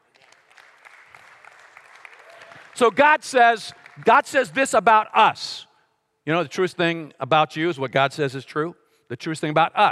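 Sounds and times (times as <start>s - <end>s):
audience applause in a church: 0.0s - 4.6s
speech: 2.8s - 5.7s, 6.3s - 9.9s.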